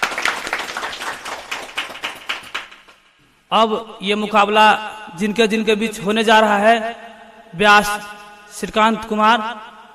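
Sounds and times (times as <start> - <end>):
audience clapping in welcome: 0.0 - 3.0
speech: 3.5 - 9.7.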